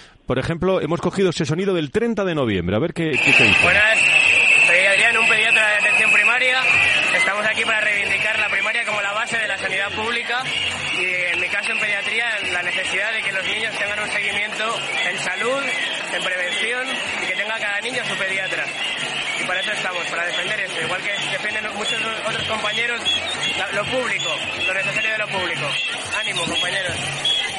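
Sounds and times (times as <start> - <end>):
speech: 0.3 - 4.8, 5.8 - 11.2, 12.2 - 27.4
street protest crowd: 3.2 - 27.5
whistles blowing at a street protest: 3.2 - 27.5.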